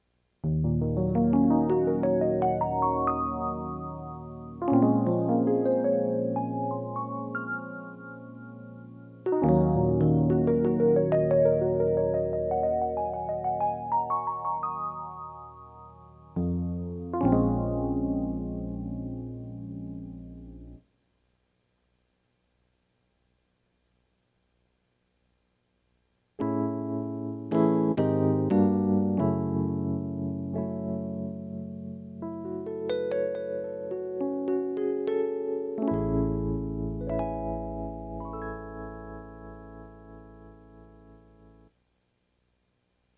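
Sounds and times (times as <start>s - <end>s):
electric piano: 0.4s - 20.8s, 26.4s - 41.7s.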